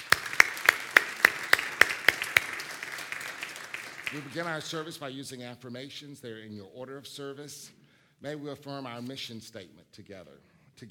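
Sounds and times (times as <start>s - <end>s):
audience applause: 0.0s - 4.9s
speech: 4.1s - 10.8s.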